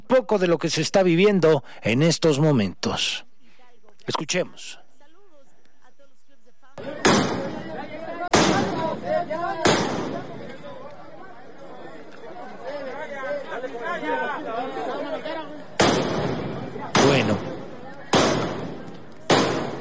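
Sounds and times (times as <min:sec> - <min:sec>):
speech: 0:00.1 - 0:03.3, 0:04.0 - 0:04.8
murmur and chatter of a crowd: 0:05.2 - 0:19.8
hammers striking steel barrier wall: 0:07.0 - 0:07.6, 0:15.8 - 0:19.8.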